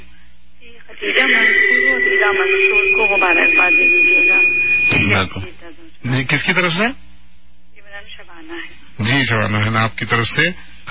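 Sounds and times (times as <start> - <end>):
radio playing loudly: 0.8 - 6.3
speech: 0.9 - 7.0, 8.0 - 10.8
high whistle or feedback tone: 1.2 - 5.4.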